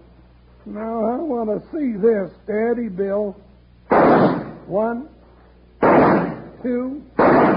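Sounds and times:
speech: 0.7 - 3.5, 4.1 - 5.2, 6.6 - 7.5
pistol gunshots shooting leaves off a plant: 3.9 - 4.7, 5.8 - 6.6, 7.2 - 7.5.

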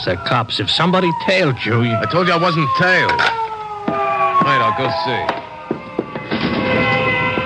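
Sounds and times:
speech: 0.0 - 3.4, 4.8 - 5.5
fire truck sirens wailing: 0.0 - 7.4.

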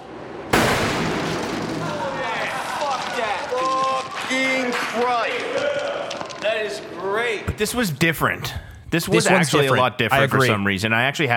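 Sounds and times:
460 Stingmore mine detonating: 0.4 - 4.3
speech: 4.3 - 11.3.

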